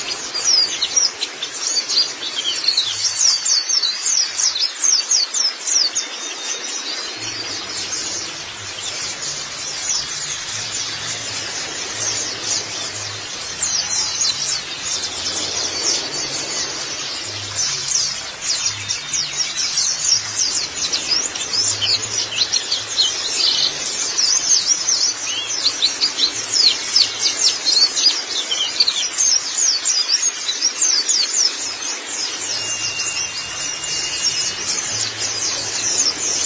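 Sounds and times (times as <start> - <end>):
white-eye twittering: 0.0 - 36.4.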